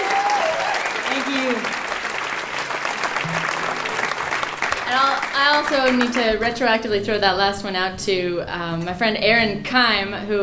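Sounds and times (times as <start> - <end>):
audience applause welcoming a musician: 0.0 - 6.4
speech: 5.1 - 10.4.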